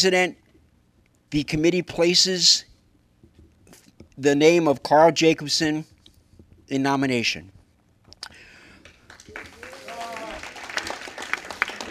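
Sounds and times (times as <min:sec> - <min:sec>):
speech: 0:00.0 - 0:00.4, 0:01.3 - 0:02.7, 0:04.2 - 0:05.9, 0:06.7 - 0:07.6
audience applause: 0:08.8 - 0:11.9.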